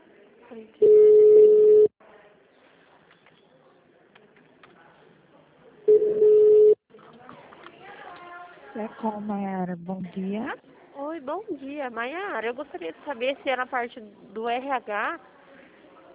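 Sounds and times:
speech: 0.5s - 1.0s, 8.8s - 15.3s
telephone ringback tone during a call transfer to Maceió city hall switchboard: 0.8s - 1.9s, 5.9s - 6.8s.

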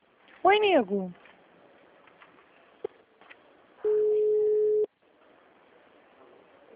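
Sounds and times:
speech: 0.5s - 1.2s
phone ringback tone: 3.9s - 4.9s.

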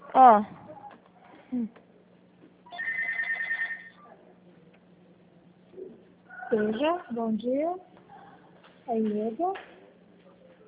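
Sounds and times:
speech: 0.2s - 0.6s, 1.5s - 1.8s, 6.5s - 7.9s, 8.9s - 9.7s
telephone ringing: 2.7s - 4.0s.

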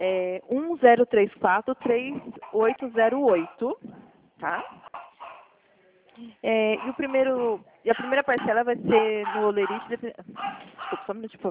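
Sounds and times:
speech: 0.0s - 4.8s, 6.2s - 11.4s
pet dog barking at home: 3.3s - 3.8s, 4.4s - 5.6s, 6.7s - 11.2s.

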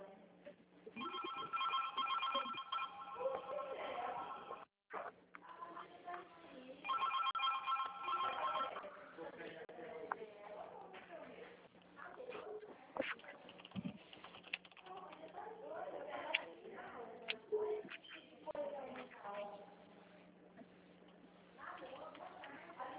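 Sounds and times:
phone ringing tone during a call: 1.0s - 4.6s, 6.8s - 8.9s
people talking: 3.2s - 4.6s, 5.4s - 7.2s, 8.2s - 13.5s, 14.8s - 20.2s, 21.6s - 22.9s.

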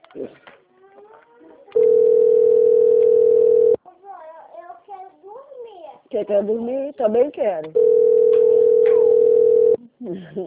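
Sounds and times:
telephone dial tone: 1.8s - 3.8s, 7.8s - 9.8s
speech: 6.2s - 8.0s, 10.0s - 10.4s.

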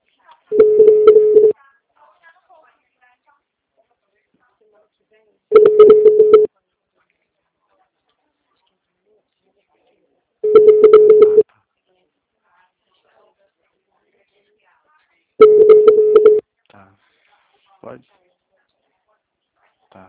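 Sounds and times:
telephone ringback tone of an unanswered call: 0.5s - 1.5s, 5.5s - 6.5s, 10.4s - 11.4s, 15.4s - 16.4s.

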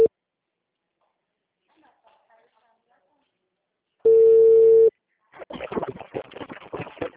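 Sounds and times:
telephone call ringing tone: 4.1s - 4.9s.

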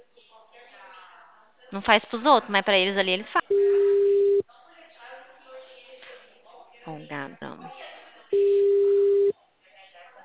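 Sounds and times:
speech: 1.7s - 3.8s, 6.9s - 8.6s
telephone tone on a call to Consignet: 3.5s - 4.4s, 8.4s - 9.3s.

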